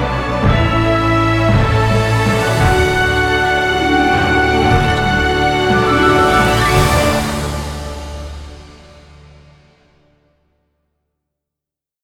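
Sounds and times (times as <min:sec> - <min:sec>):
orchestral logo music: 0:00.1 - 0:09.6.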